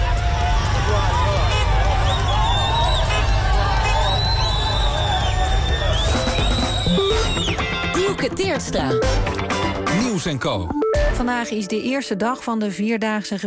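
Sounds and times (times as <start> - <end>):
crowd cheering loudly at border crossing as Red Cross cars arrive: 0.0 - 7.8
speech: 8.5 - 9.4, 10.2 - 13.4.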